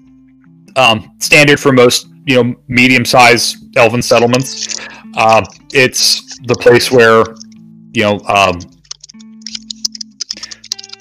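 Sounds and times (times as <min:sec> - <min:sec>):
speech: 0:00.8 - 0:08.8
keyboard typing: 0:04.4 - 0:07.6, 0:08.3 - 0:10.9.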